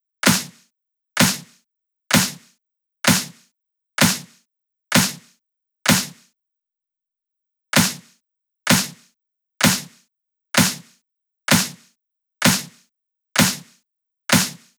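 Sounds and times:
clap loop: 0.2s - 0.6s, 1.2s - 3.4s, 4.0s - 5.3s, 5.9s - 6.2s, 7.8s - 8.1s, 8.7s - 10.0s, 10.6s - 10.9s, 11.5s - 11.8s, 12.4s - 12.8s, 13.4s - 13.7s, 14.3s - 14.7s.

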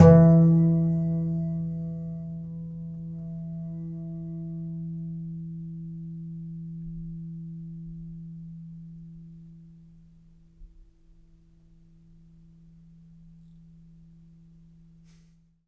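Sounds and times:
contrabass balalaika plucked strings: 0.0s - 6.7s.

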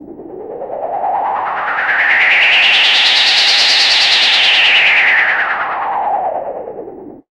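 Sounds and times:
synth sound effects: 0.0s - 5.8s.

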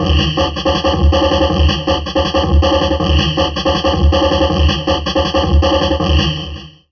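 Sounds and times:
heavily processed drum loop: 0.0s - 6.9s.

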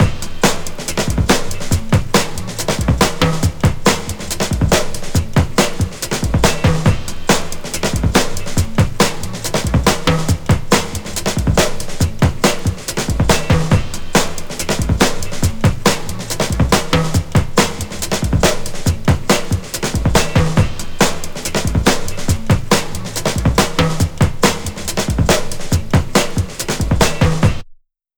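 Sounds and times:
funky breakbeat: 0.0s - 27.7s.

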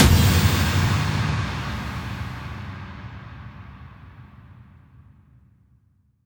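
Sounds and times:
impact sound effects: 0.0s - 4.0s.

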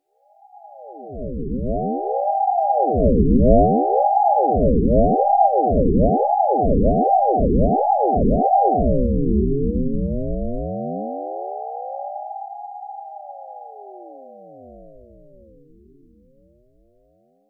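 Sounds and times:
synth sweep: 1.0s - 11.3s.

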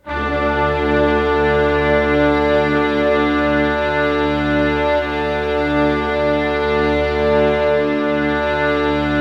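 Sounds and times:
brass band orchestra playing D5: 0.0s - 9.1s.

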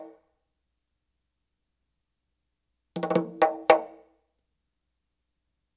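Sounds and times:
Arabic rhythm percussion: 3.0s - 3.9s.

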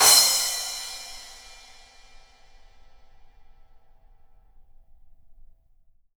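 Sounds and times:
drums and percussion: 0.0s - 1.9s.

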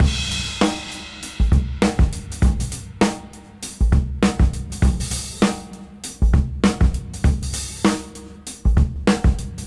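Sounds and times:
swing music: 0.0s - 9.6s.

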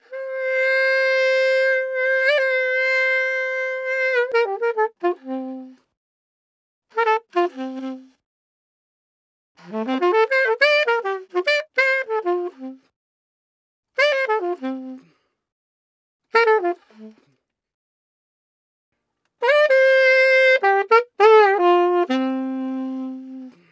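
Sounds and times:
free saxophone solo in F: 0.0s - 5.9s, 6.9s - 8.2s, 9.6s - 12.9s, 14.0s - 15.2s, 16.3s - 17.3s, 19.4s - 23.7s.

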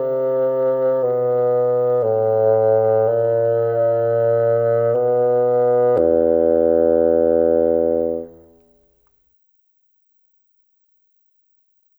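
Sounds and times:
cinematic bassoon: 0.0s - 8.6s.

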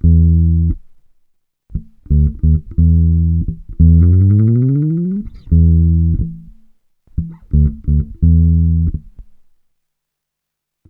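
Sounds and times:
funk bass grooves: 1.8s - 6.5s, 7.2s - 9.1s.

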